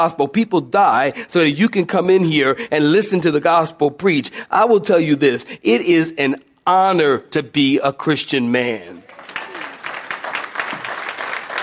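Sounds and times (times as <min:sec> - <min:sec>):
speech: 0:00.0 - 0:09.0
audience clapping: 0:09.0 - 0:11.6.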